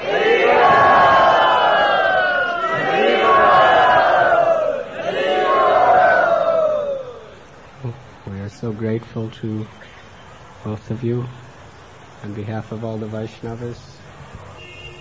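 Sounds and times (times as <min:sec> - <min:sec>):
crowd chanting in welcome: 0:00.0 - 0:07.4
speech: 0:08.9 - 0:09.9, 0:10.6 - 0:11.5, 0:12.2 - 0:14.0.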